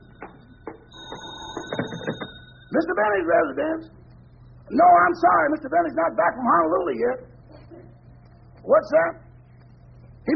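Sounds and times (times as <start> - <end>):
old telephone bell ringing: 0.0 - 3.5
speech: 2.8 - 4.0, 4.7 - 7.4, 8.6 - 9.2.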